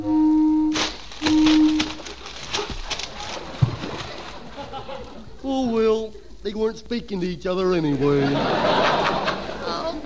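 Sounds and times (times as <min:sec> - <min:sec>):
boat warning horn blasts: 0:00.0 - 0:02.2
laughter: 0:02.0 - 0:06.0, 0:07.9 - 0:10.0
speech: 0:05.5 - 0:09.0.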